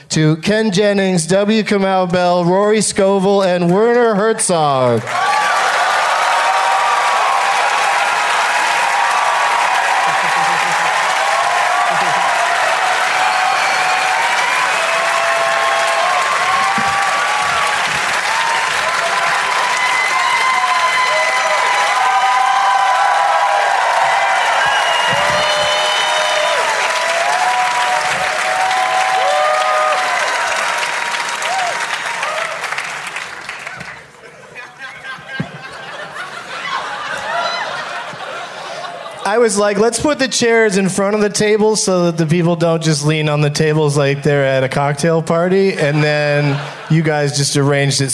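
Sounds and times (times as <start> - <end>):
speech: 0.0 - 5.5, 39.4 - 48.1
audience applause and cheering: 4.7 - 39.8
laughter: 9.7 - 12.7, 34.2 - 39.8, 45.6 - 47.8.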